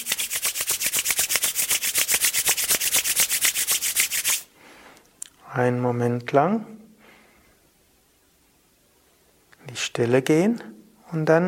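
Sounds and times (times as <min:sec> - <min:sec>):
palms of the hands rubbed briskly together: 0:00.0 - 0:04.5
speech: 0:05.6 - 0:06.8, 0:10.0 - 0:11.4.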